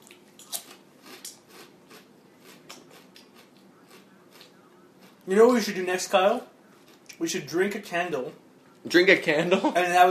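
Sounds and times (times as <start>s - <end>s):
chewing crunchy chips with seeds: 0.0s - 5.7s, 6.8s - 7.2s
speech: 5.3s - 6.5s, 7.2s - 10.0s.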